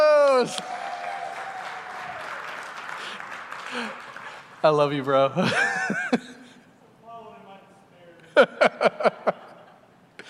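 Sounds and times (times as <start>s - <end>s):
speech: 0.4s - 0.7s, 4.6s - 6.0s, 8.4s - 9.2s
church congregation applause welcoming a man to the front: 0.5s - 4.9s
laughter: 5.3s - 6.6s, 8.2s - 9.9s.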